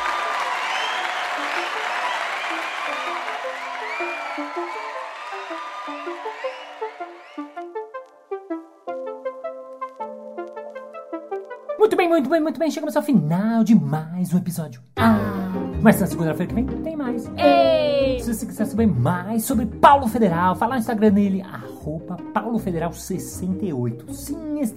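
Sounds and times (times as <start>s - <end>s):
audience applause: 0.0s - 7.8s
speech: 12.1s - 24.7s.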